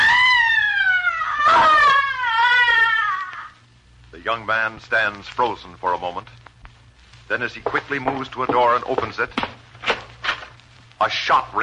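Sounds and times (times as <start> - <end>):
blood-curdling shriek of frustration and anguish: 0.0 - 3.6
speech: 4.3 - 6.4, 7.3 - 9.5, 11.0 - 11.6.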